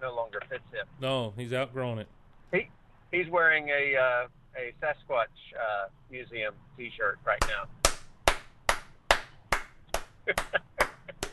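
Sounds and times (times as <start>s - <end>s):
speech: 0.5s - 2.6s, 3.2s - 7.8s, 10.3s - 10.6s
voice murmuring: 0.9s - 2.0s
slow hand claps: 7.4s - 11.3s.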